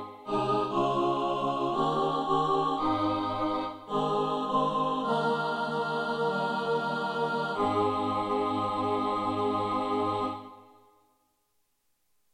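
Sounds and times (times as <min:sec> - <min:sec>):
SATB choir singing: 0:00.0 - 0:10.9.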